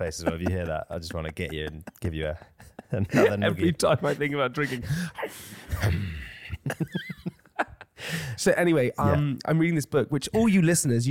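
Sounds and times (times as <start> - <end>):
speech: 0.0 - 7.1, 8.4 - 11.0
Wim Hof style heavy breathing: 4.1 - 6.5, 8.0 - 8.4
laughter: 8.1 - 10.8.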